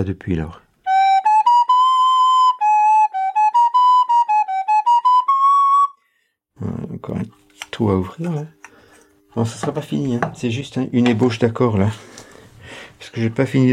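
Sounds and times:
speech: 0.0s - 0.6s, 6.6s - 8.6s, 9.4s - 12.1s, 13.0s - 13.7s
handmade wooden flute playing a lively melody: 0.8s - 6.2s.

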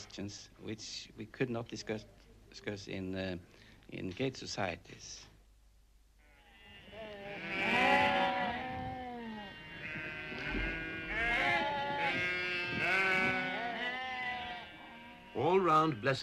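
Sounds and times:
speech: 0.0s - 5.3s, 15.4s - 16.2s
flock of sheep bleating: 6.2s - 16.2s.

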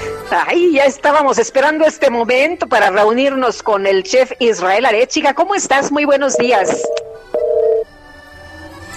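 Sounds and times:
speech: 0.3s - 7.4s
telephone call ringing during a radio show: 6.3s - 7.9s.

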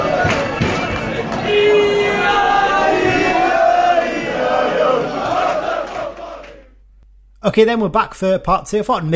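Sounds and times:
roaring football crowd cheering: 0.0s - 6.8s
speech: 7.4s - 9.1s.

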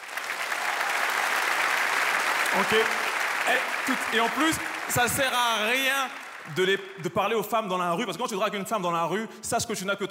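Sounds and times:
audience applause: 0.0s - 7.7s
speech: 2.6s - 10.1s.

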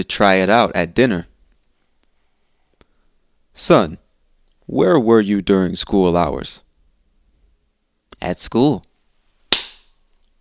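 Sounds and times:
speech: 0.0s - 1.3s, 3.6s - 4.0s, 4.7s - 6.6s, 8.2s - 8.9s
robot slapping someone: 9.5s - 9.9s.

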